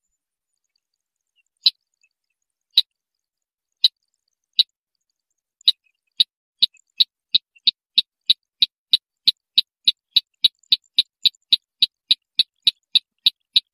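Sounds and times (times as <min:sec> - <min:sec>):
white-breasted waterhen train of sharp clicks: 0:06.1 - 0:13.7.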